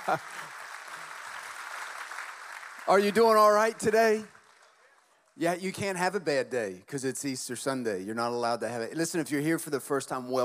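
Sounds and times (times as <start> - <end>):
speech: 0.0 - 0.6, 2.9 - 4.4, 5.4 - 10.4
audience clapping: 0.0 - 5.7.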